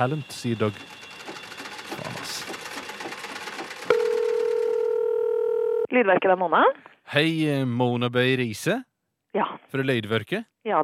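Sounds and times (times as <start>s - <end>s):
speech: 0.0s - 1.0s, 5.9s - 10.8s
telephone number being dialed: 0.0s - 5.9s.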